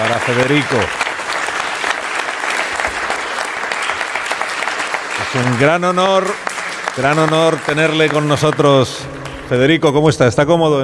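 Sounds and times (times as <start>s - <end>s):
speech: 0.0s - 1.0s, 5.3s - 10.8s
audience applause: 0.0s - 9.7s.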